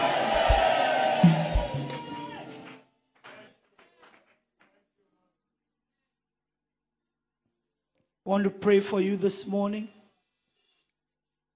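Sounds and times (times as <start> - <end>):
audience screaming: 0.0 - 2.8
speech: 8.3 - 10.0.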